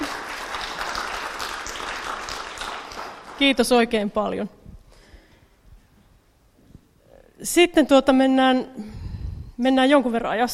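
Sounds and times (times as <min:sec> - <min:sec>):
audience applause for the speaker: 0:00.0 - 0:03.6
speech: 0:03.4 - 0:04.6, 0:07.6 - 0:09.0, 0:09.6 - 0:10.5.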